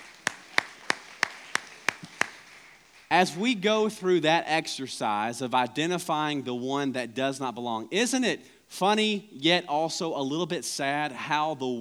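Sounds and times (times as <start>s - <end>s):
hand claps: 0.0s - 3.4s
speech: 3.1s - 11.7s.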